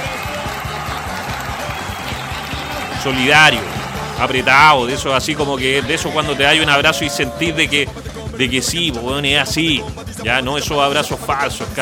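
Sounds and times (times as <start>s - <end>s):
applause: 0.0s - 6.4s
speech: 3.0s - 11.8s.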